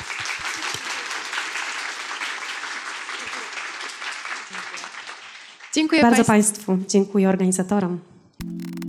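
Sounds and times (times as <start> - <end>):
audience applause: 0.0 - 6.2
speech: 5.8 - 8.1.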